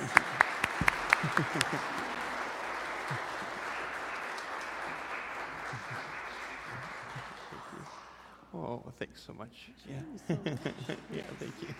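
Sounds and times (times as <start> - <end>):
laughter: 0.0 - 8.0, 9.9 - 11.7
crowd applause: 0.0 - 8.5, 10.3 - 11.7
speech: 1.4 - 2.0, 8.8 - 11.7.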